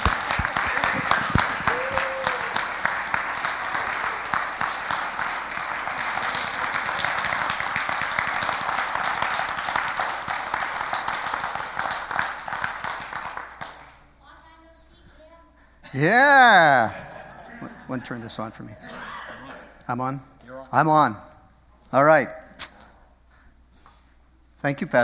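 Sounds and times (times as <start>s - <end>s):
audience applause: 0.0s - 13.9s
laughter: 0.4s - 2.4s, 16.0s - 19.5s
speech: 16.0s - 17.0s, 17.9s - 19.0s, 19.9s - 21.3s, 21.9s - 22.4s, 24.6s - 25.0s.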